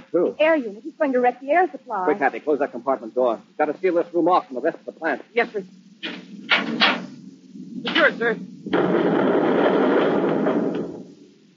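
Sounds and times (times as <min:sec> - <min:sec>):
speech: 0:00.1 - 0:06.1, 0:07.9 - 0:09.8
roaring rocket blasts hitting the plant: 0:05.6 - 0:11.5.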